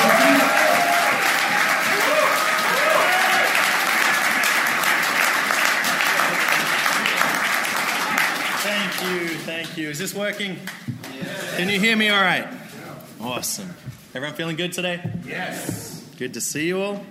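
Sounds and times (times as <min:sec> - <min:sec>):
conference audience applause at a faith-based leadership event: 0:00.0 - 0:10.9
speech: 0:10.0 - 0:11.0, 0:11.6 - 0:12.6, 0:13.2 - 0:17.0.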